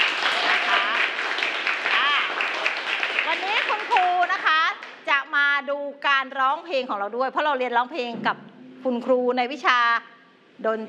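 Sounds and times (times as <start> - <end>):
clapping hands: 0.0 - 5.0
speech: 6.4 - 10.8.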